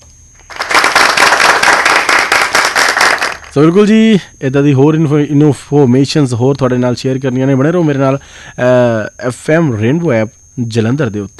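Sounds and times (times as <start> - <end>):
many hands clapping: 0.4 - 3.6
speech: 3.6 - 11.3.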